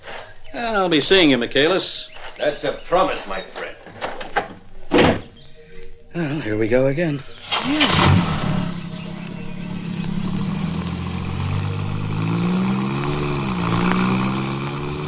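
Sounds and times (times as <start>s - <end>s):
speech: 0.6s - 3.6s, 6.2s - 8.3s
old car engine revving and pulling away: 7.5s - 15.0s.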